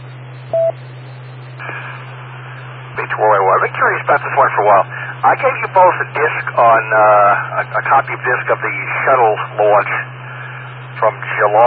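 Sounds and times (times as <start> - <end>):
telephone call-in beep tones: 0.5 - 0.8
speech: 3.2 - 10.1, 11.0 - 11.6.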